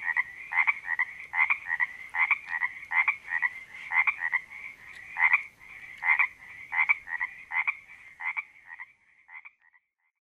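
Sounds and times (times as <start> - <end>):
creek frog chorus croaking at a creek in Panoche Valley, California: 0.0 - 10.1.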